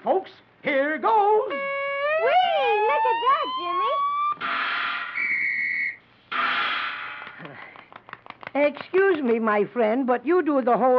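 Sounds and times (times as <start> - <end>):
speech: 0.2 - 1.6, 8.6 - 10.9
shrill whistle blast during a performing seal trick: 1.5 - 7.2.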